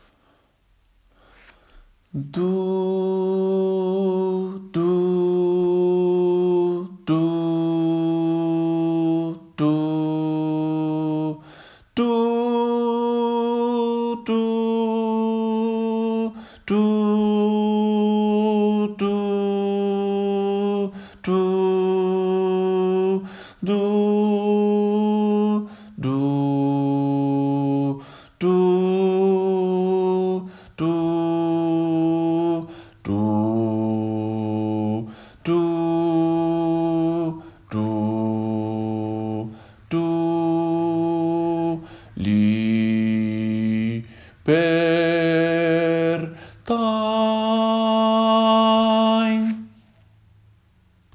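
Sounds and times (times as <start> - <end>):
bass voices singing: 2.1 - 49.7.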